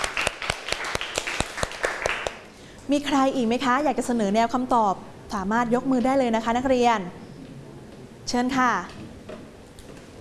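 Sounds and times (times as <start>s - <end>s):
students clapping in a classroom: 0.0s - 2.5s
speech: 2.9s - 7.2s, 8.3s - 9.0s.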